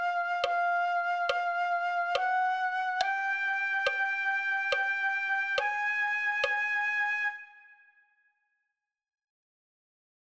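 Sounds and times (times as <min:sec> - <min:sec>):
flute: 0:00.0 - 0:08.2.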